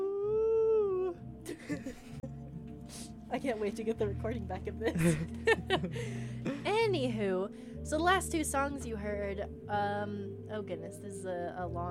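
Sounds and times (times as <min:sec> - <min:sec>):
person howling like a wolf: 0:00.0 - 0:01.2
laughter: 0:01.5 - 0:02.3, 0:04.8 - 0:06.6
speech: 0:02.9 - 0:11.8.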